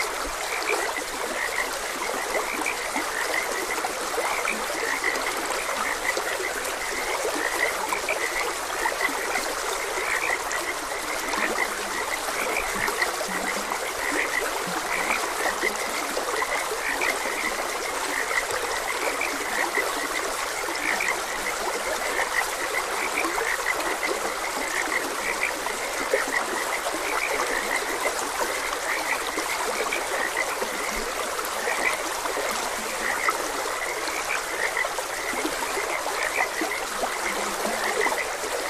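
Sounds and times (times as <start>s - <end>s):
frogs croaking in a chorus: 0.0s - 38.6s
steady rushing stream: 0.0s - 38.6s.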